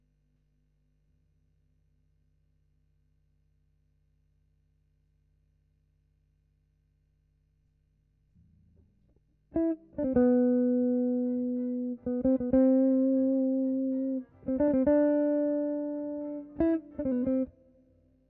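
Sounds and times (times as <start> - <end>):
guitar: 9.5 - 18.2.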